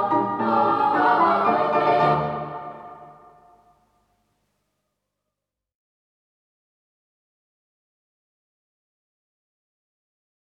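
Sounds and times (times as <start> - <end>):
Italian polka music: 0.0 - 3.5.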